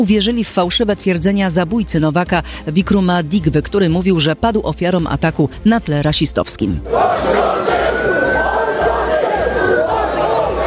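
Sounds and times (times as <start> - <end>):
speech: 0.0 - 8.2
rioting crowd shouting: 6.8 - 10.6.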